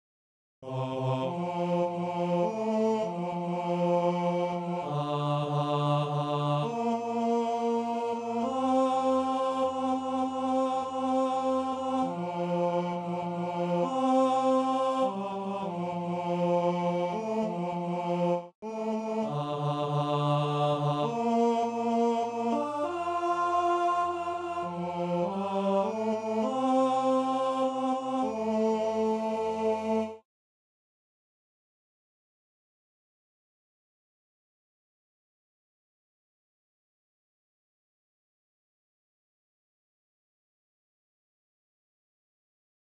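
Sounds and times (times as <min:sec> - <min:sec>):
tenor singing: 0:00.6 - 0:30.2.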